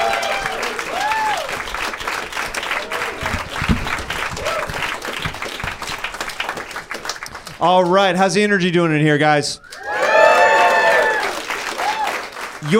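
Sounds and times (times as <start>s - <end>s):
audience whooping: 0.0s - 1.8s, 2.7s - 5.3s, 9.6s - 12.3s
audience applause at a stand-up comedy show: 0.0s - 8.1s, 9.6s - 12.7s
speech: 7.6s - 9.7s.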